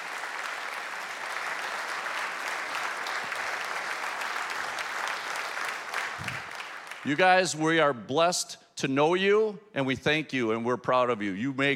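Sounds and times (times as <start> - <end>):
audience applause for graduating class: 0.0 - 7.3
speech: 7.1 - 11.7.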